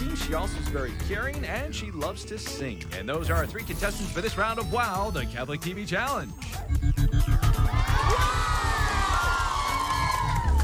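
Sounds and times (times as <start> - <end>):
rapid steady rhythmic thumping: 0.0 - 10.6
speech: 0.3 - 7.4
crowd cheering and whooping: 7.0 - 10.6
audience applause: 7.8 - 10.6.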